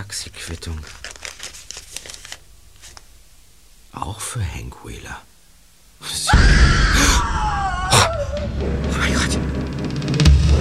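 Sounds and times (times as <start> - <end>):
speech: 0.0 - 1.0, 4.0 - 5.3, 6.0 - 7.3, 8.3 - 10.6
person screaming: 6.3 - 8.6.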